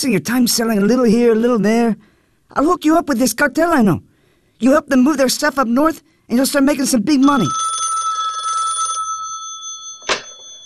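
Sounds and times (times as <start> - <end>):
speech: 0.0 - 7.8
telephone ringing with a buzzing trill: 7.2 - 10.6.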